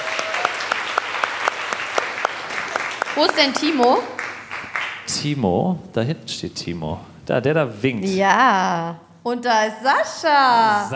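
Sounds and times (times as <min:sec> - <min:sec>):
audience applause: 0:00.0 - 0:05.1
speech: 0:03.2 - 0:04.2, 0:05.1 - 0:10.9.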